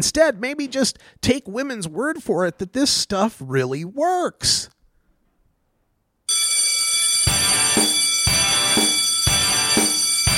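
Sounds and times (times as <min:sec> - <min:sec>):
speech: 0:00.0 - 0:04.8
bell ringing: 0:06.3 - 0:10.3.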